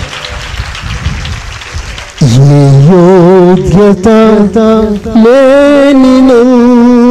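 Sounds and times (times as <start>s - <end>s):
congregation applauding to glorify God during a Telugu church service: 0.0s - 5.4s
speech: 2.4s - 7.0s.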